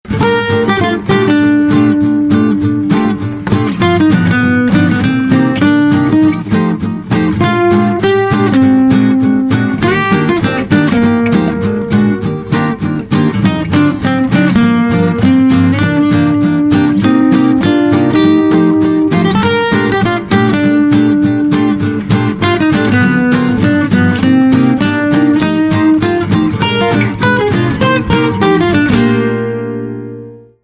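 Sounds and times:
old school guitars: 0:00.0 - 0:30.6.

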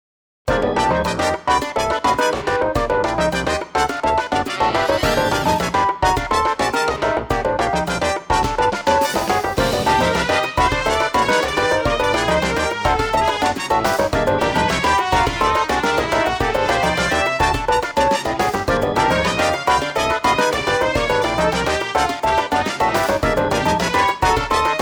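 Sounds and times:
Cuban son funk music: 0:00.5 - 0:24.7.

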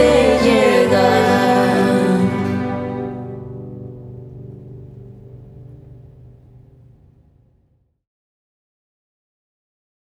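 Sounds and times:
vocals: 0:00.0 - 0:04.1
orchestral music: 0:00.0 - 0:05.5.

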